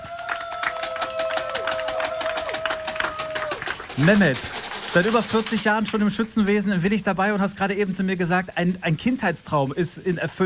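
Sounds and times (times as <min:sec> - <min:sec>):
crowd clapping: 0:00.0 - 0:06.0
speech: 0:04.0 - 0:10.4.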